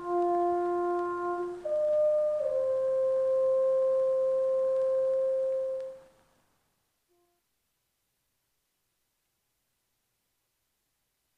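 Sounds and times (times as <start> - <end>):
tenor horn playing a serenade: 0.0 - 6.2, 7.1 - 7.5.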